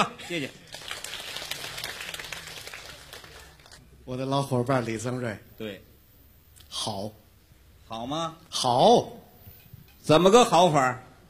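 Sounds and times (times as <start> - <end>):
speech: 0.0 - 0.7, 4.0 - 5.9, 6.8 - 7.2, 7.9 - 9.2, 10.0 - 11.1
faint audience applause at a live comedy stage show: 0.3 - 3.8.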